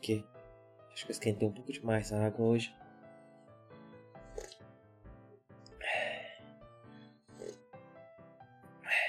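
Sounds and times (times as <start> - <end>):
speech: 0.0 - 0.3, 0.9 - 2.8
sipping hot herbal tea: 4.3 - 4.6.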